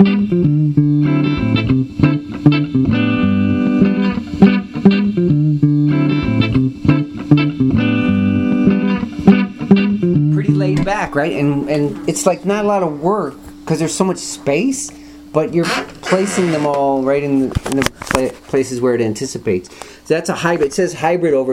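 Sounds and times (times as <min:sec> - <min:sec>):
bass line groove: 0:00.0 - 0:12.2
distorted effects-heavy instrument tones: 0:00.0 - 0:14.8
speech: 0:11.2 - 0:21.5.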